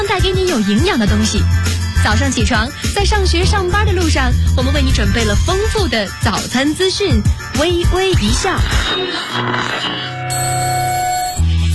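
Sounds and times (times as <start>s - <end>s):
music: 0.0s - 11.7s
speech: 0.2s - 10.1s
alarm clock ringing: 10.3s - 11.5s.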